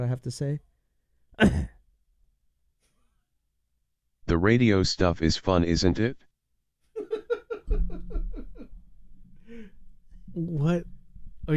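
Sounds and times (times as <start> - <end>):
speech: 0.0 - 0.7, 1.4 - 1.8, 4.3 - 6.3, 10.4 - 11.5
throat clearing: 1.4 - 1.8
laughter: 7.0 - 8.7.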